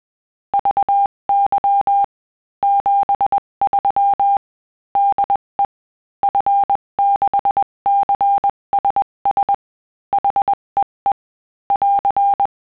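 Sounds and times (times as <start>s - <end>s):
CW Morse code beeps: 0.6s - 4.4s, 6.3s - 10.9s, 11.7s - 12.5s.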